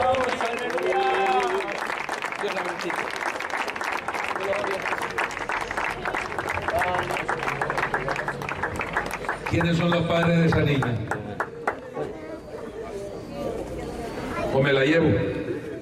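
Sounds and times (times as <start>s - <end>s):
audience applauding: 0.0s - 12.0s
speech: 9.6s - 11.2s, 14.6s - 15.3s.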